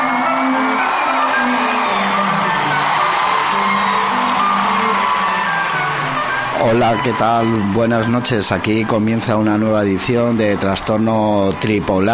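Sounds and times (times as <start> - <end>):
overlapping voices shouting: 0.0 - 7.8
crowd cheering to welcome two hosts onto a comedy show: 0.0 - 8.7
speech: 6.8 - 12.1.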